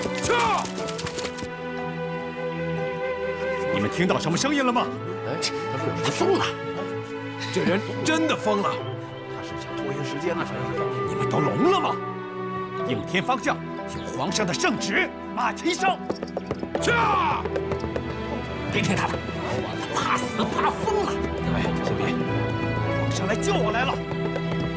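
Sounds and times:
clip-clop horse hoofbeats approaching in a radio drama: 0.0s - 1.5s, 15.8s - 24.7s
music: 0.0s - 24.7s.

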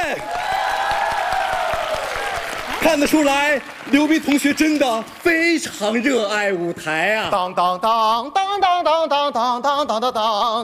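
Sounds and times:
audience applause: 0.0s - 5.9s
speech: 0.1s - 0.4s, 2.8s - 10.6s.

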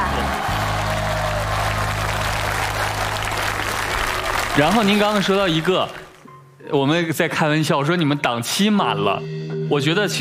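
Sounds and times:
audience applause: 0.0s - 6.2s
speech: 4.6s - 6.0s, 6.7s - 10.1s.

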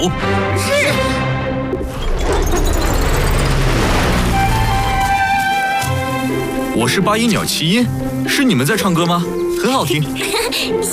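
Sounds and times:
speech: 0.0s - 1.0s, 6.8s - 10.9s
cartoon Flying Fish boat engine starting up and roaring: 0.9s - 8.3s.

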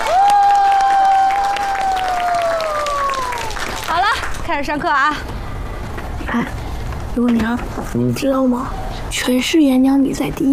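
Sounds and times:
classroom applause: 0.0s - 4.4s
speech: 4.5s - 5.4s, 6.3s - 6.6s, 7.2s - 10.5s.

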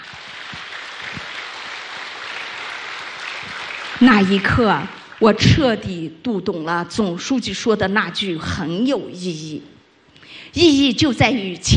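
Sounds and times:
room full of people applauding: 0.0s - 5.4s
speech: 4.0s - 9.8s, 10.5s - 11.7s.

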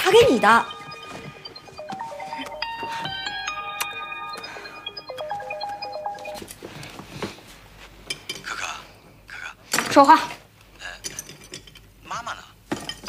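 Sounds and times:
mobile phone melodic ringtone: 0.0s - 6.5s
speech: 0.1s - 0.8s, 10.0s - 10.4s.

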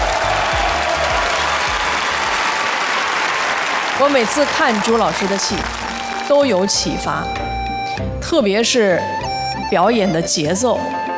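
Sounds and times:
audience applause: 0.0s - 6.8s
speech: 4.0s - 7.4s, 8.0s - 11.1s.

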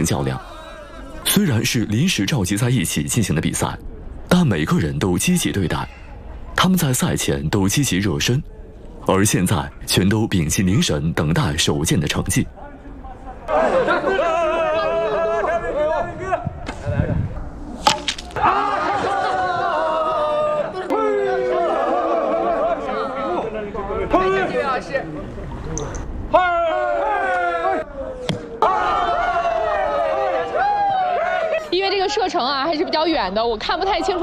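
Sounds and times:
speech: 0.0s - 0.5s, 1.3s - 6.0s, 6.6s - 12.6s, 32.3s - 34.2s
spectators shouting and cheering: 13.5s - 17.1s, 18.3s - 24.5s, 26.3s - 32.9s.

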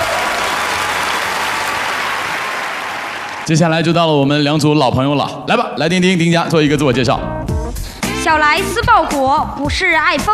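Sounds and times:
audience applause: 0.0s - 3.6s
speech: 3.5s - 7.4s, 8.2s - 10.3s.

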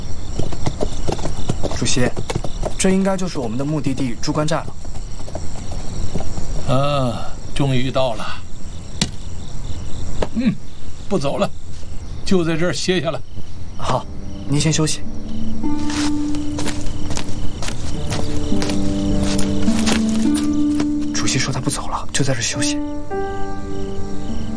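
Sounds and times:
big white horse's hooves clip-clopping while ridden: 0.0s - 6.8s, 15.8s - 21.2s
crickets chirping: 0.0s - 24.5s
speech: 1.8s - 4.9s, 6.7s - 8.4s, 10.4s - 11.6s, 12.3s - 15.1s, 22.2s - 23.3s.

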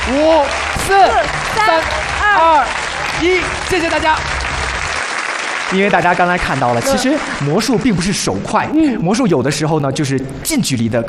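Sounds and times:
audience applause: 0.0s - 8.3s
speech: 0.1s - 4.4s, 5.7s - 11.0s.

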